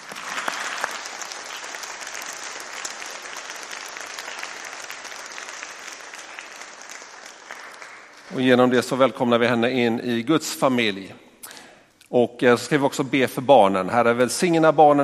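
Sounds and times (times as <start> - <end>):
audience applause: 0.0 - 8.7
speech: 8.3 - 11.3, 12.1 - 15.0.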